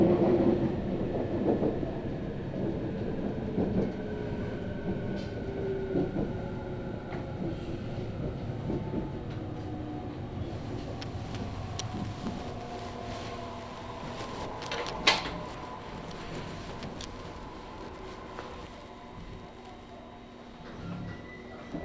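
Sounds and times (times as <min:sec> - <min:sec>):
one-man train rumble and rattle: 0:00.0 - 0:21.8.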